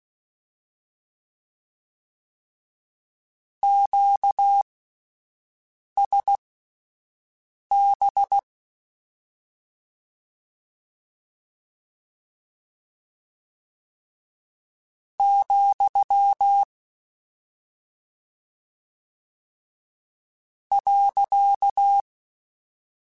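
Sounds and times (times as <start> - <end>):
Morse code beeps: 3.6 - 4.6, 6.0 - 6.4, 7.7 - 8.4, 15.2 - 16.7, 20.7 - 22.0.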